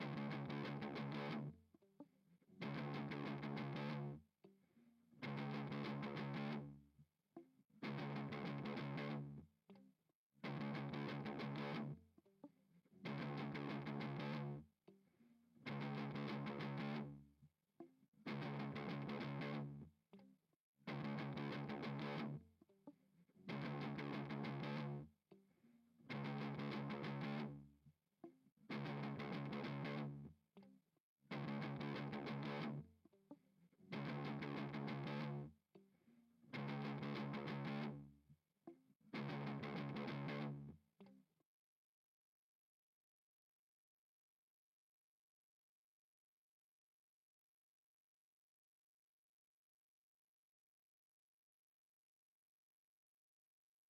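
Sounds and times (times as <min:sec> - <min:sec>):
guitar: 0:00.0 - 0:41.2.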